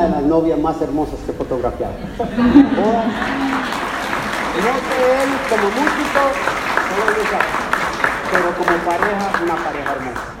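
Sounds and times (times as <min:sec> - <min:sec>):
speech: 0:00.3 - 0:03.8, 0:04.6 - 0:07.6, 0:08.3 - 0:10.3
laughter: 0:01.8 - 0:06.3
crowd applauding: 0:02.6 - 0:10.3.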